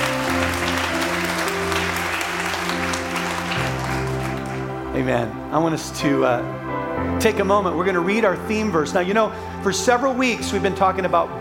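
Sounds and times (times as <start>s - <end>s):
church congregation applauding to welcome its church family: 0.0s - 5.5s
sustained music chords: 0.0s - 10.3s
speech: 5.0s - 11.3s.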